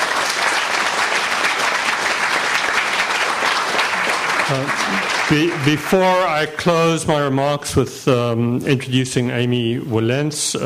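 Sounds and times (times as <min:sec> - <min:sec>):
audience applause: 0:00.0 - 0:06.6
speech: 0:04.5 - 0:10.6.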